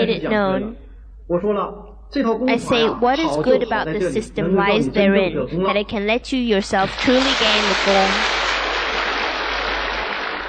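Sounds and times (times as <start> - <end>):
speech: 0.0 - 8.4
audience applauding: 6.8 - 10.4.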